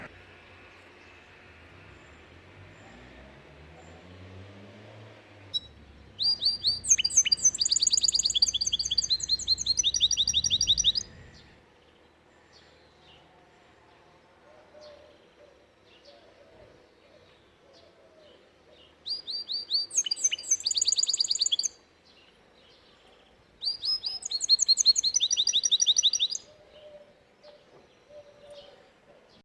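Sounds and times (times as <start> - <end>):
domestic canary singing: 5.4 - 11.9, 17.1 - 21.8, 23.6 - 28.8.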